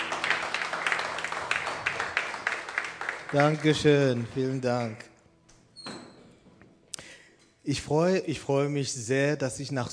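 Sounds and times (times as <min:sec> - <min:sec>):
audience applause: 0:00.0 - 0:04.3
speech: 0:03.3 - 0:05.1, 0:07.7 - 0:09.9.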